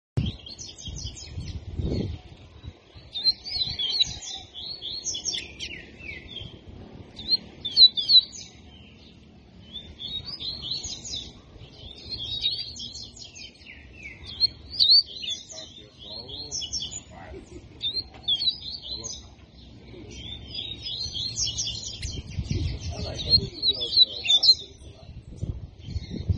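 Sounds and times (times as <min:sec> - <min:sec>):
double-collared seedeater twittering song: 0:00.2 - 0:26.3.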